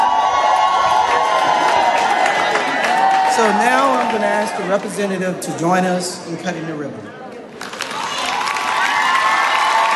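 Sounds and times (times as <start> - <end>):
crowd cheering and shouting at a JCPenney store opening: 0.0 - 5.3, 7.6 - 9.9
speech: 3.4 - 7.2.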